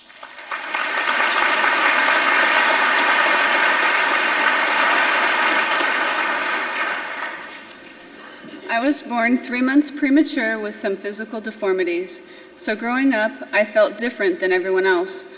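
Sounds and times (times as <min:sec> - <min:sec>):
audience applause welcoming a woman speaker: 0:00.0 - 0:07.8
speech: 0:08.8 - 0:15.3.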